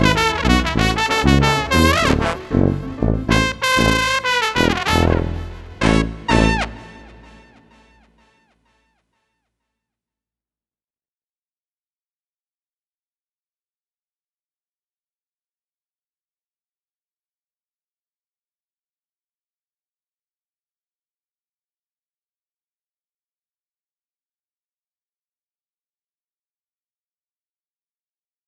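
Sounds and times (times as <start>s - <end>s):
bouncy street brass music: 0.0s - 8.0s.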